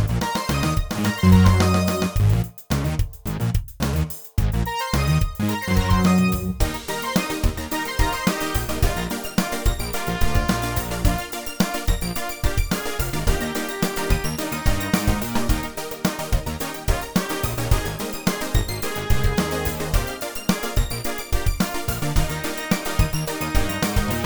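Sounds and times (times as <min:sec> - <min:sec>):
brass study in E-flat: 0:00.1 - 0:03.0, 0:04.6 - 0:24.2.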